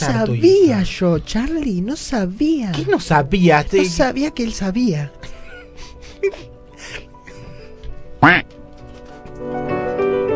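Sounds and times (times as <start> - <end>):
speech: 0.0 - 5.3, 8.2 - 8.6
goose honking: 8.2 - 8.4.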